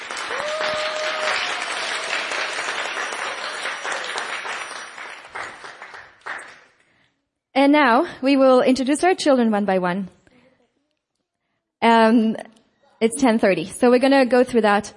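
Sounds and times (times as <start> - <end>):
audience applause: 0.0 - 6.8
speech: 7.6 - 10.2, 12.0 - 14.9.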